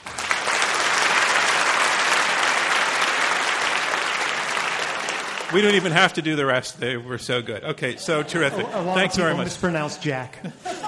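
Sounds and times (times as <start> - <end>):
audience applause: 0.0 - 6.5
speech: 5.5 - 10.8
laughter: 7.7 - 10.8.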